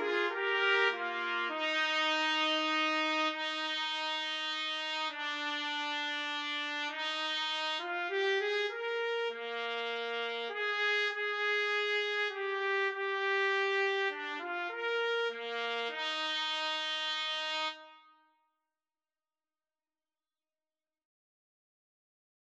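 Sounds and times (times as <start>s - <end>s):
trumpet trio playing karaoke backing: 0.0s - 17.8s.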